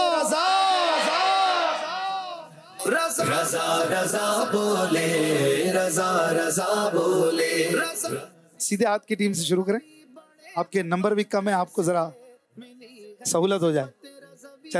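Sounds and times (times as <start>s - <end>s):
quiz-show team shouting a slogan together: 0.0s - 8.4s
speech: 2.9s - 10.0s, 10.6s - 14.0s.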